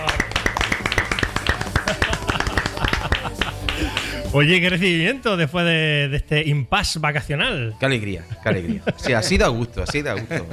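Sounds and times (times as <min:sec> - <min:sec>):
applause from a small group: 0:00.0 - 0:04.3
laughter: 0:01.6 - 0:04.2, 0:08.2 - 0:10.5
speech: 0:04.4 - 0:10.5.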